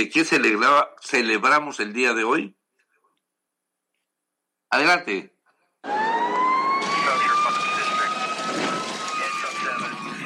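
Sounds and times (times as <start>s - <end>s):
speech: 0.0s - 2.6s, 4.7s - 6.4s
emergency vehicle siren: 5.8s - 10.2s.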